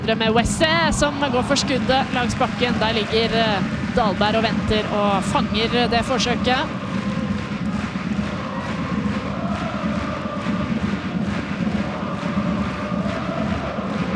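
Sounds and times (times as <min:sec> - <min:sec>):
speech: 0:00.0 - 0:06.8
football supporters cheering and chanting in stadium: 0:00.1 - 0:14.1.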